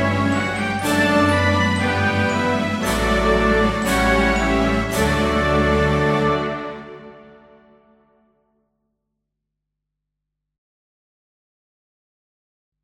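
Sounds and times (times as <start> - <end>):
instrumental music: 0.0 - 8.2.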